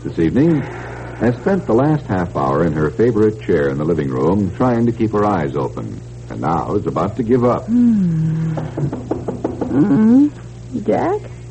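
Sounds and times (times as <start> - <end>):
speech: 0.0 - 11.4
knocking at the front door: 8.5 - 9.9.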